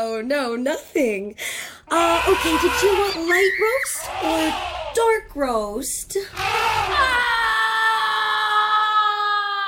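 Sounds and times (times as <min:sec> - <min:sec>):
speech: 0:00.2 - 0:07.3
person screaming: 0:01.9 - 0:05.0, 0:06.3 - 0:09.6.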